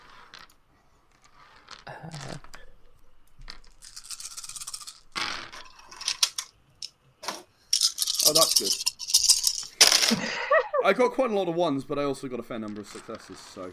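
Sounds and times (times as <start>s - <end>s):
several dice shaken and rolled: 0.0s - 2.6s, 3.4s - 6.9s, 7.7s - 10.2s, 12.6s - 13.7s
speech: 8.3s - 8.8s, 10.8s - 13.7s.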